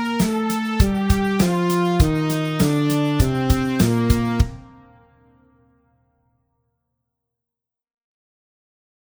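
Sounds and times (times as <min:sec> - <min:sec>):
B-flat major scale played at medium tempo: 0:00.0 - 0:05.0.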